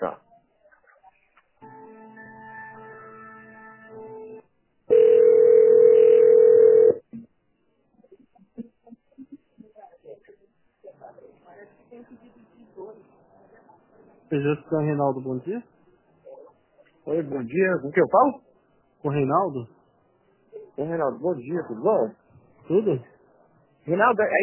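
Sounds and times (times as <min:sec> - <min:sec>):
telephone humming multi-tone signal after a dropped call: 0:04.9 - 0:07.0
speech: 0:14.3 - 0:15.8, 0:17.2 - 0:19.8, 0:20.8 - 0:23.1, 0:23.9 - 0:24.4.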